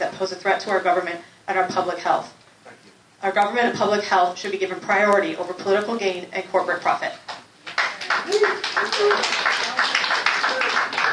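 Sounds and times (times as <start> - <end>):
speech: 0.2 - 2.4, 3.2 - 7.2, 8.2 - 9.6
audience at a public meeting applauding a speaker: 7.6 - 11.1.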